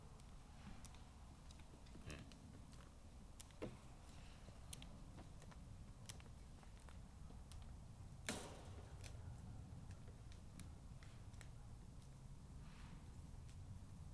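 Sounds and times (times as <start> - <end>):
fallow deer walking about: 0.0 - 13.7
fence rattling: 8.1 - 10.9.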